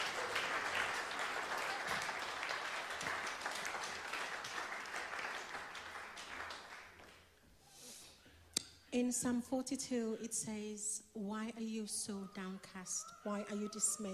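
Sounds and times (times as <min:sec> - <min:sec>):
audience applause: 0:00.0 - 0:07.3
speech: 0:08.9 - 0:14.1.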